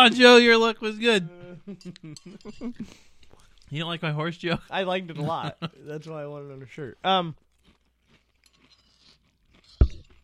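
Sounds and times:
speech: 0.0 - 3.1, 3.7 - 7.4
crunchy cereal being chewed: 5.9 - 10.2.

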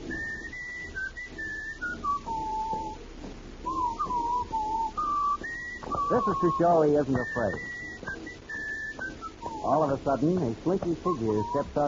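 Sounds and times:
man whistling a tune: 0.1 - 3.0, 3.6 - 11.8
speech: 6.1 - 7.8, 9.6 - 11.8.

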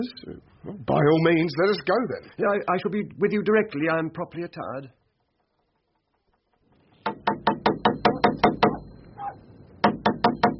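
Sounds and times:
speech: 0.0 - 5.0
knocking on a door: 7.0 - 8.9, 9.8 - 10.5.

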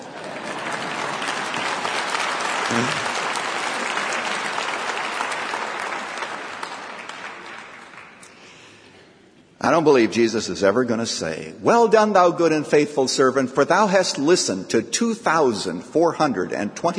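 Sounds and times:
audience clapping and applause: 0.0 - 8.4
speech: 2.7 - 3.0, 9.7 - 16.9.

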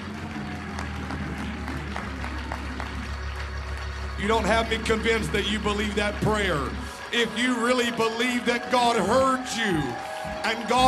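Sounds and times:
low sustained tone: 0.0 - 8.2
audience clapping hands: 0.0 - 10.8
speech: 4.2 - 10.8.

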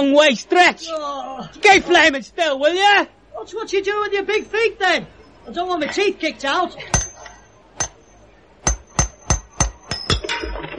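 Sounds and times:
speech: 0.0 - 7.0
hammer driving a peg in: 6.9 - 10.3.

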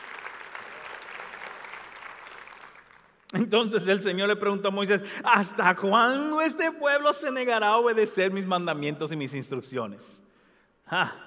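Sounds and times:
audience applause: 0.0 - 3.2
speech: 3.3 - 10.2, 10.9 - 11.2.

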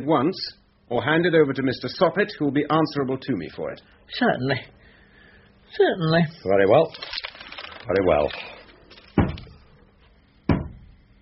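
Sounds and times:
speech: 0.0 - 4.8, 5.7 - 7.2, 7.8 - 8.5
knocking on a door: 10.5 - 11.0.

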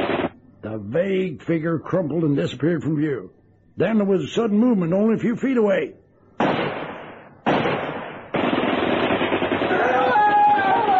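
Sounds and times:
machine gun burst: 0.0 - 0.3, 6.4 - 10.9
speech: 0.8 - 6.0.

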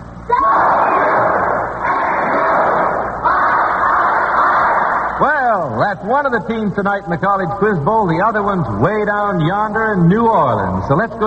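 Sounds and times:
students cheering for their team: 0.3 - 5.2
speech: 5.9 - 11.2.

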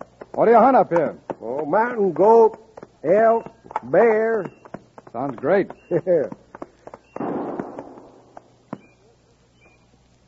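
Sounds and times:
speech: 0.4 - 4.6, 5.2 - 6.4
distant gunshots as signal: 7.2 - 8.3.

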